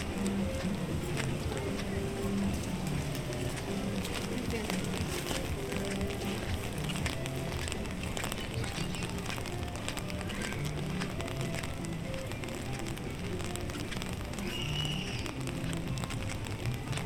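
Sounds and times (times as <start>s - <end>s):
crowd chatter in Animal Kingdom park at Walt Disney World: 0.0s - 17.0s
footsteps: 0.0s - 17.0s.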